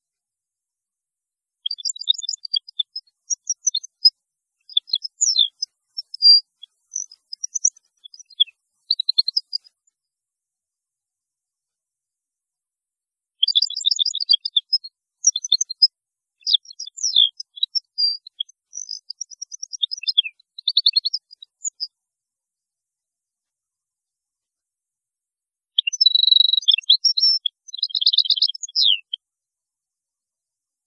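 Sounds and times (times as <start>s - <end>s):
European goldfinch twittering song: 1.6s - 9.8s, 13.4s - 21.9s, 25.8s - 29.2s.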